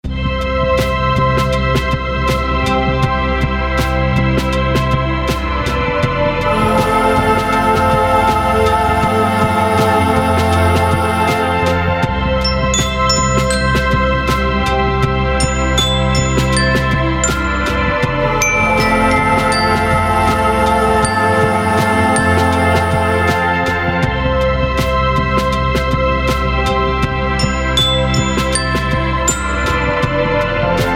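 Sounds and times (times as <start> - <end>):
uplifting music ending: 0.6 - 30.9.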